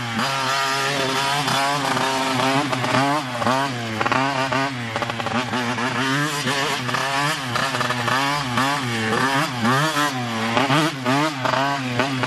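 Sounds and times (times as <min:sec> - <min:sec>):
motorcycle engine: 0:00.0 - 0:12.2.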